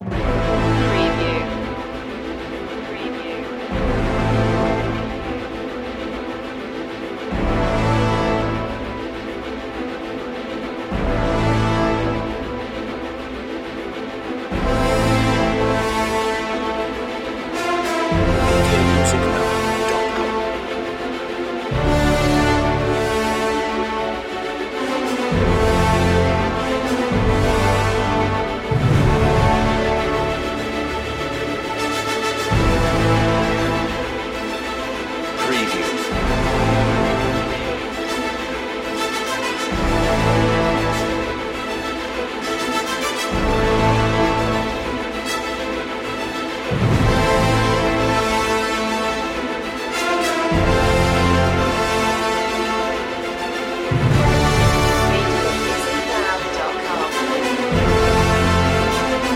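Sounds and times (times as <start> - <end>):
music without choir: 0.0 - 59.3.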